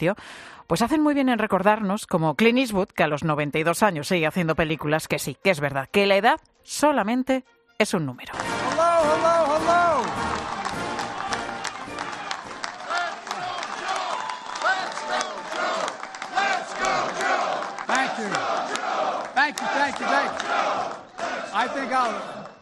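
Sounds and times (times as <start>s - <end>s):
speech: 0.0s - 10.2s, 21.6s - 22.5s
crowd cheering: 8.3s - 22.5s.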